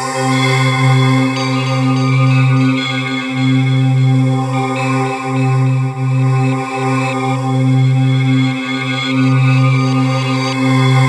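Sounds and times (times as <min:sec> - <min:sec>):
synth pads: 0:00.1 - 0:11.0.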